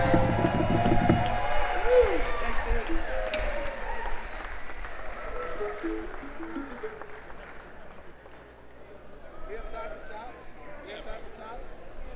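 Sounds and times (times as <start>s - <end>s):
whoops: 0.0s - 7.0s
audience clapping and cheering for a performer: 0.0s - 8.8s.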